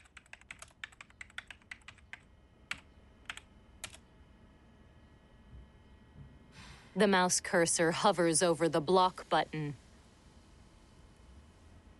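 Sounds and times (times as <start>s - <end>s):
typing on a computer keyboard: 0.0s - 4.0s
speech: 7.0s - 9.8s.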